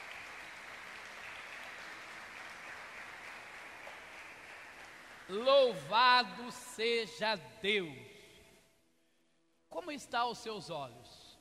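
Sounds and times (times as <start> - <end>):
audience applause: 0.0 - 5.5
speech: 5.3 - 8.1, 9.9 - 11.2.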